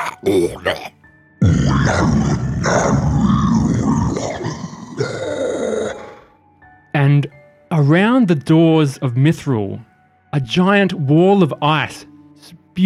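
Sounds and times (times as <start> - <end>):
guttural arcane spellcasting voice effect in deep speech: 0.0 - 6.3
speech: 0.2 - 1.0, 1.9 - 3.3, 7.1 - 12.8.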